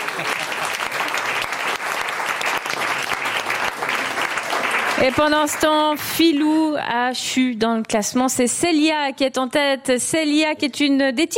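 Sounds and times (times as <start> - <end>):
audience applause: 0.0 - 5.8
speech: 5.0 - 11.3.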